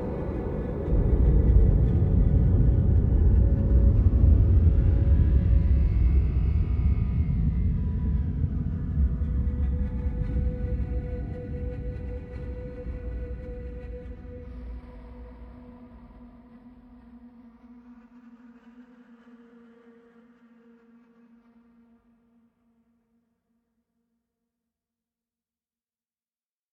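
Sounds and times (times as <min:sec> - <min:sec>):
ambience: 0:00.0 - 0:19.8.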